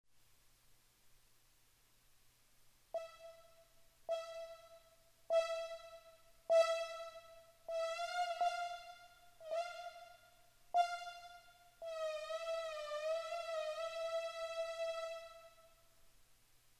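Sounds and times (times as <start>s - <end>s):
instrumental music: 3.0s - 15.8s.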